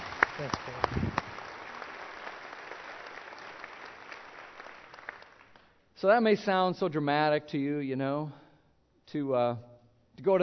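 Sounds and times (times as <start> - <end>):
audience applauding: 0.0 - 5.7
speech: 0.4 - 1.0, 6.0 - 8.4, 9.1 - 10.4.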